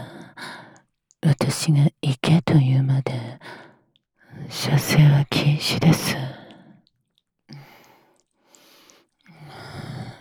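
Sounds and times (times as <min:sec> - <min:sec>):
whispering: 0:01.3 - 0:03.4, 0:04.5 - 0:06.5.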